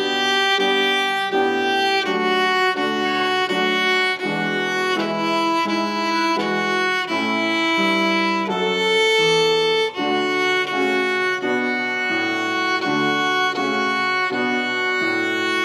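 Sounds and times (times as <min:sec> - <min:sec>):
piano playing: 0:00.0 - 0:15.6.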